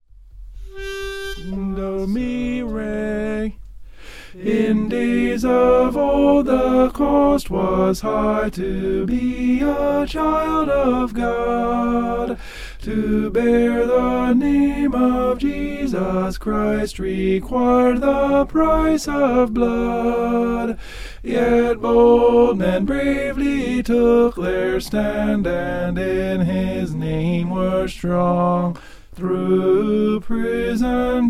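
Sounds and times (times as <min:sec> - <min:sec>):
tenor singing: 0:00.8 - 0:03.6, 0:04.3 - 0:31.2.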